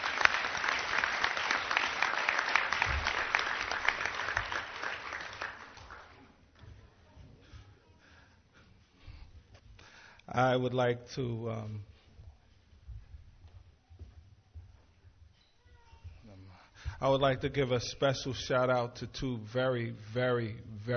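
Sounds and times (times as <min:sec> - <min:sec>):
audience applause for veterans: 0:00.0 - 0:06.4
speech: 0:10.4 - 0:11.9, 0:17.0 - 0:20.9.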